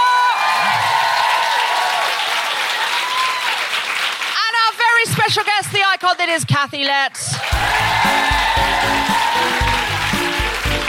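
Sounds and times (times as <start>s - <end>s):
audience applause: 0.0s - 4.8s, 7.4s - 10.8s
speech: 5.3s - 9.6s.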